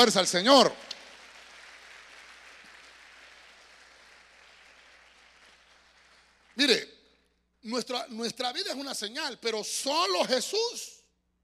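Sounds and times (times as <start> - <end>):
speech: 0.0 - 0.9, 7.7 - 11.0
audience clapping: 0.0 - 6.8.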